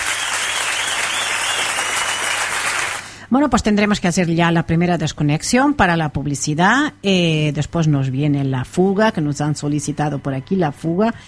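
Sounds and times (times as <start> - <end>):
audience applause: 0.0 - 3.2
speech: 3.3 - 11.2.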